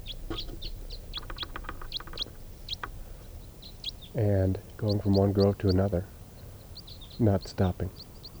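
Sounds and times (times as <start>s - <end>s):
crossbill flock calling: 0.0s - 8.3s
speech: 4.2s - 6.2s, 7.2s - 8.1s.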